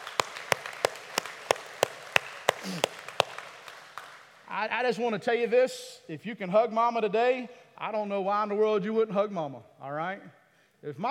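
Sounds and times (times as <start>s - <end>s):
audience applause hand claps: 0.0s - 4.5s
speech: 2.6s - 3.0s, 4.5s - 11.0s.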